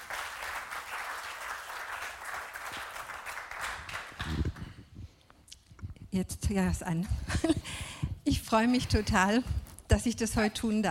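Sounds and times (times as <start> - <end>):
audience applause: 0.0 - 4.7
speech: 6.1 - 10.8.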